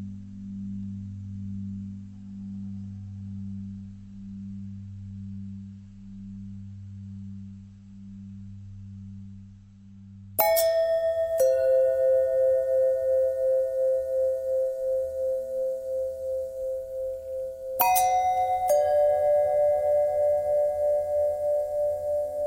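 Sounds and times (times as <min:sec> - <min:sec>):
long pentatonic bells: 0:10.4 - 0:22.4.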